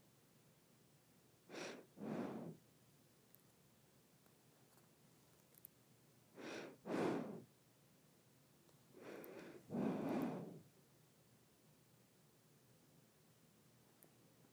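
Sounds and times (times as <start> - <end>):
nose breathing: 1.5 - 2.6, 6.4 - 7.5, 9.0 - 10.7.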